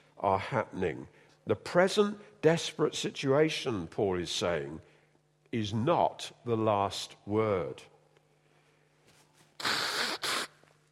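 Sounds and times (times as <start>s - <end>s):
speech: 0.2s - 4.9s, 5.5s - 7.9s
nose blowing: 9.6s - 10.7s.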